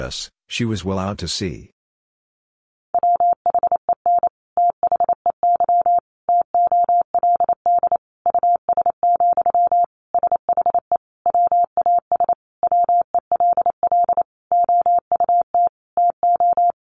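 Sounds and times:
speech: 0.0 - 1.7
Morse code sentence tone: 3.0 - 16.8.

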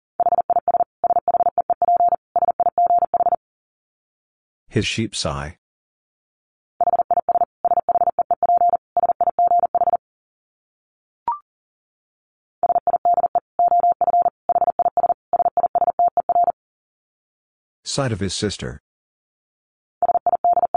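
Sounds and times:
Morse code beeps at 40 wpm: 0.2 - 3.4, 6.8 - 10.0, 12.6 - 16.6, 20.0 - 20.7
speech: 4.7 - 5.6, 18.0 - 18.8.

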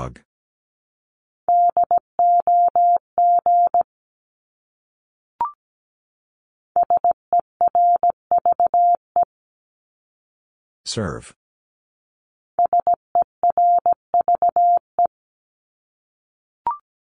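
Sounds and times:
speech: 0.0 - 0.3, 10.9 - 11.4
Morse code beeps: 1.5 - 3.8, 6.8 - 9.3, 12.6 - 14.8.

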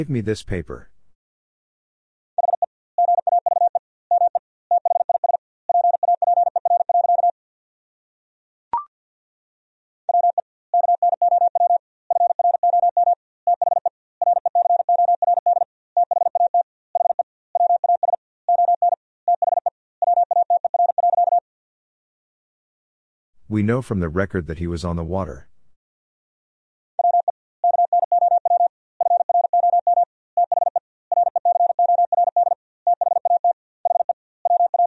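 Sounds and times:
speech: 0.0 - 0.9, 23.6 - 25.5
Morse code tones sending a sentence: 2.4 - 7.3, 10.1 - 21.4, 27.0 - 34.8.

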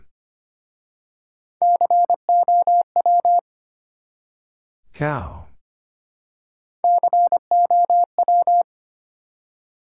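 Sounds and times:
morse code practice at 25 wpm: 1.6 - 3.4, 6.8 - 8.7.

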